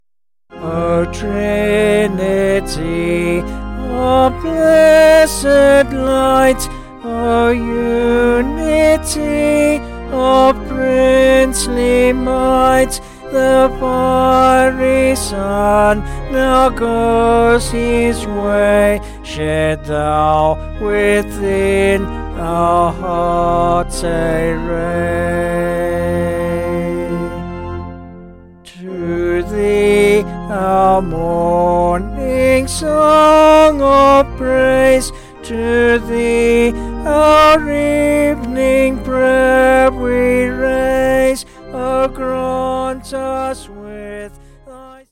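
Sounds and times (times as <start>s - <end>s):
hymn: 0.5s - 45.1s.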